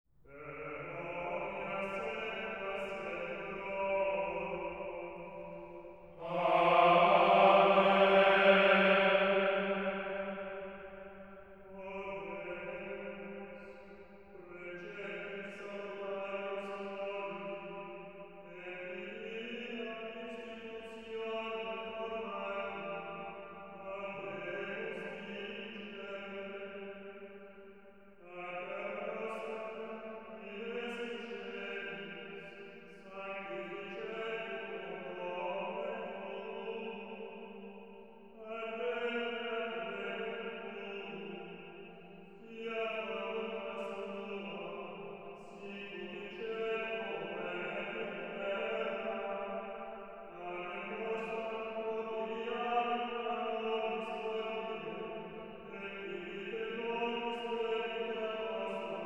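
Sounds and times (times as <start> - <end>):
liturgical chant: 0.1 - 59.0.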